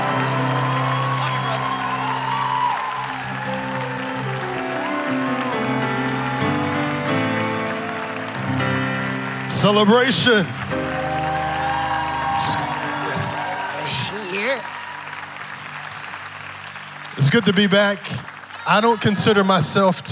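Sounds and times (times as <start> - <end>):
people whooping: 0.0 - 19.8
congregation applauding a pastor: 0.0 - 20.1
sustained music: 0.0 - 20.1
speech: 9.6 - 10.6, 17.3 - 20.1.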